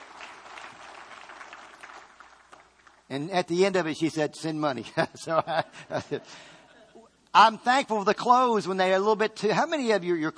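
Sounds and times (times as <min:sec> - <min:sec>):
church congregation clapping for the Lord: 0:00.0 - 0:03.5
speech: 0:03.1 - 0:06.6, 0:07.4 - 0:10.3.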